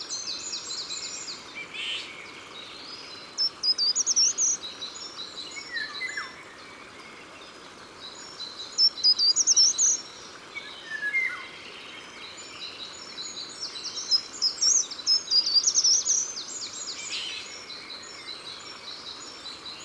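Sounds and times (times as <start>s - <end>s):
soft background hiss: 0.0s - 19.8s
Eurasian wren singing: 3.4s - 4.7s, 8.4s - 11.5s, 13.8s - 19.8s.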